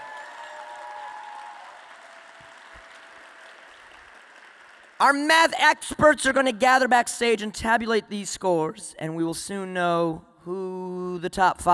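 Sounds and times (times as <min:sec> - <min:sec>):
audience applause for poets: 0:00.0 - 0:05.0
speech: 0:05.0 - 0:11.7.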